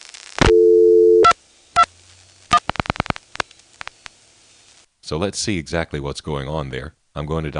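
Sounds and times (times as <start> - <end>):
telephone register sender dialing out over a T-carrier trunk: 0.5 - 1.9
speech: 5.1 - 7.5.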